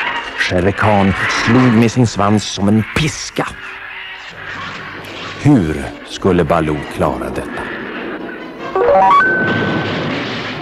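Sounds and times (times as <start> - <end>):
speech: 0.5 - 3.8, 5.4 - 7.8
thunder crash: 8.1 - 10.6.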